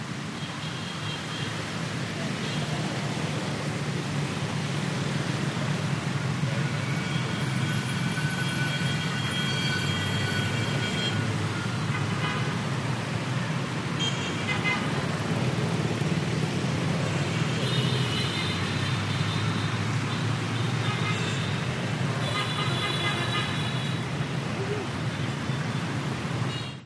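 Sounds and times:
cars passing on a busy urban road in Vietnam: 0.0s - 26.8s
siren on a busy urban road in Vietnam: 7.6s - 11.1s.

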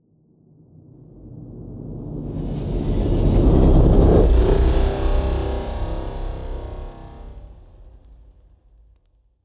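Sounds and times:
cinematic transition: 2.0s - 8.1s.

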